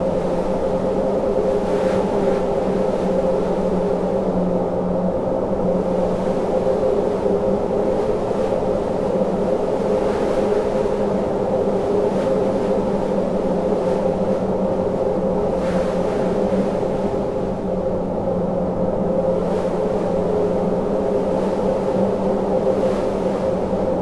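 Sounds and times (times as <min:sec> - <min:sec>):
big wind: 0:00.0 - 0:24.0.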